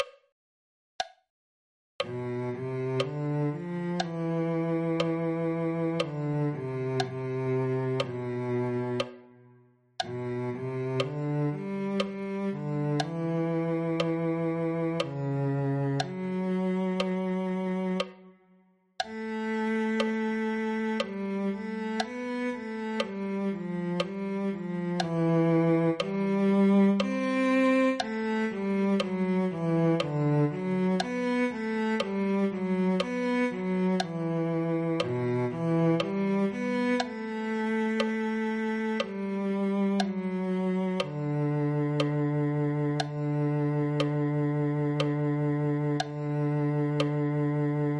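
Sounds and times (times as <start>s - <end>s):
cello: 2.0s - 47.9s.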